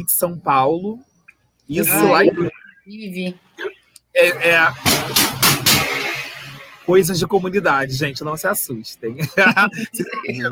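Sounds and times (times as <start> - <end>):
speech: 0.0 - 1.1, 1.7 - 3.6, 4.2 - 5.4, 6.9 - 10.5
laughter: 1.8 - 2.7, 4.2 - 4.9, 9.1 - 10.5
loud sharp popping bangs from a motorcycle: 4.5 - 6.8
motorcycle passing by with a low engine rumble: 5.6 - 7.0.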